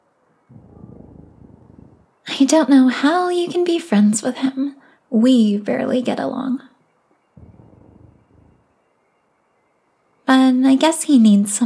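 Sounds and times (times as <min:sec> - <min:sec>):
person snoring: 0:00.5 - 0:02.1, 0:07.4 - 0:08.7
speech: 0:02.4 - 0:06.7, 0:10.6 - 0:11.6.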